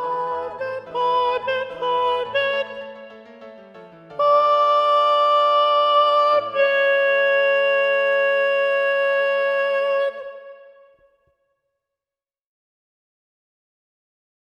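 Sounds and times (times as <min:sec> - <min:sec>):
second soprano singing predominant: 0:00.0 - 0:11.0.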